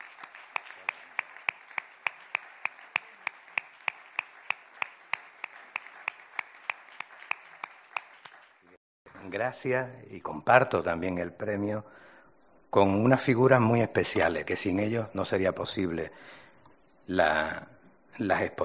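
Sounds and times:
audience applause: 0.0 - 8.7
speech: 9.3 - 12.1, 12.7 - 16.4, 17.1 - 18.6.

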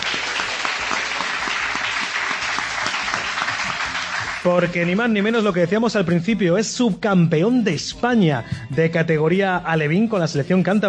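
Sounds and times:
fourth and fifth year students at Colegio Sagrada Familia applauding loudly: 0.0 - 5.5
speech: 4.4 - 10.8.

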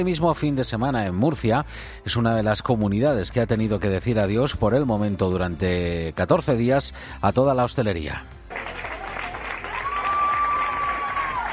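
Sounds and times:
speech: 0.0 - 8.4
restaurant customers applauding on a terrace in Murcia: 8.5 - 11.5.

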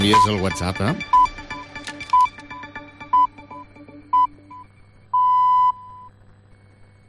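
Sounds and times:
speech: 0.0 - 1.2
radio time signal beeps: 0.0 - 6.2.

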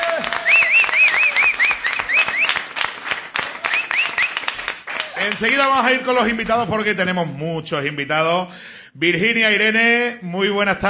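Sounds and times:
loud audience applause: 0.0 - 6.1
speech: 5.3 - 10.8.

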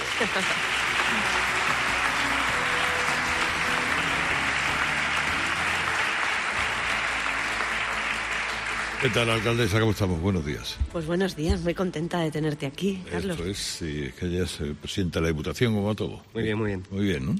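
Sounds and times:
audience applause: 0.0 - 10.4
speech: 0.2 - 1.8, 9.0 - 17.3.

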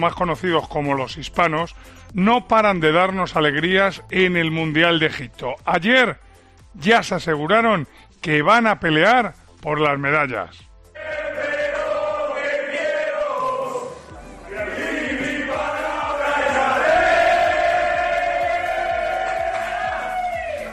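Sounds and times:
speech: 0.0 - 10.7
Spanish handball team shouting and chanting in celebration: 10.9 - 20.7.

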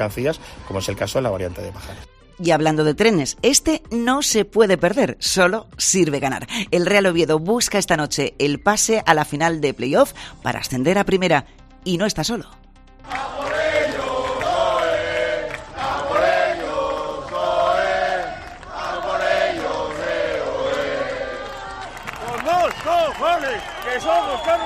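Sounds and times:
speech: 0.0 - 13.2, 23.4 - 24.6
football fans chanting: 13.0 - 23.5.

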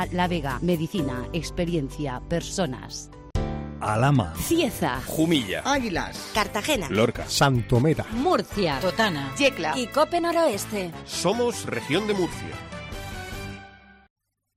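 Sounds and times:
speech: 0.0 - 3.2, 3.8 - 12.7
radio station jingle music: 3.8 - 12.8.

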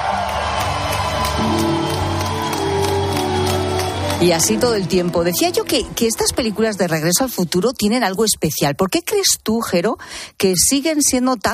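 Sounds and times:
audience ovation: 0.0 - 7.4
speech: 4.2 - 11.5.

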